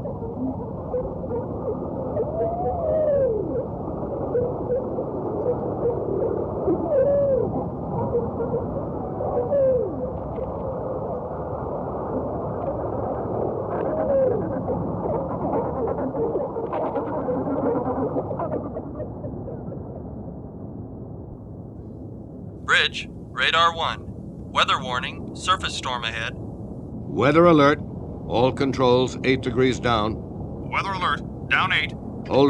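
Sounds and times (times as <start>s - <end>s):
fish sounds recorded by sonar hydrophones: 0.1s - 21.2s
speech: 22.9s - 26.4s, 27.2s - 32.4s.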